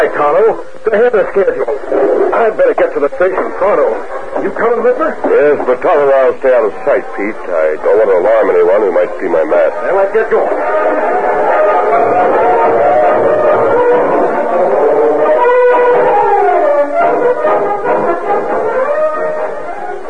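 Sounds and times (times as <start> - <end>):
speech: 0.1 - 11.1
loud sustained train whistle: 10.6 - 20.0.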